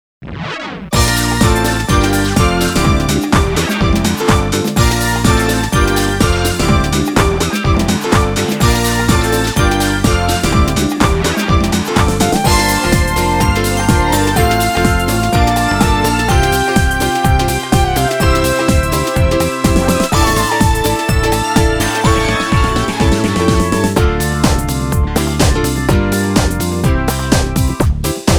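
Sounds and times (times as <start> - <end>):
instrumental music: 1.0 - 28.3.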